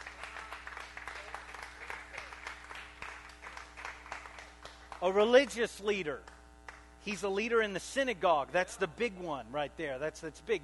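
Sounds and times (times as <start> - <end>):
audience clapping hands: 0.0 - 5.6, 6.2 - 6.9
speech: 5.0 - 6.3, 7.0 - 10.6.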